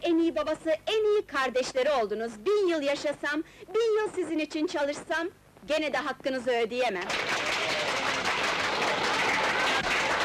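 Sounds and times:
speech: 0.2s - 7.6s
applause from a large crowd: 7.0s - 10.2s.

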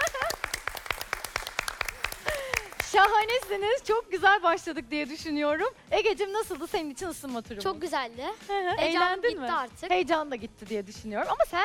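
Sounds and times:
quiz show contestant clapping for himself: 0.0s - 3.6s
speech: 2.9s - 11.6s.

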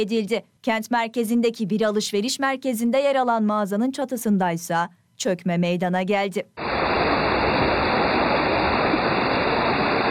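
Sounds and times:
speech: 0.0s - 6.9s
rushing water of overflowing streams in Kocaeli: 6.6s - 10.0s.

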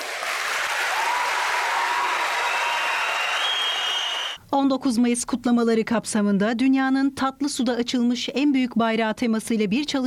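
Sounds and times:
large crowd in a hall applauding commandos at a May 19 celebration: 0.0s - 4.4s
speech: 4.5s - 10.0s.

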